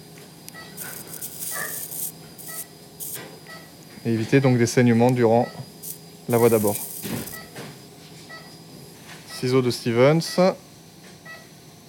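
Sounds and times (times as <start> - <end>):
steady electrical hum: 0.0 - 11.8
electrosurgical scalpel cauterizing tissue: 0.5 - 3.3, 5.1 - 7.6
speech: 4.0 - 5.7, 6.3 - 7.2, 9.4 - 10.7.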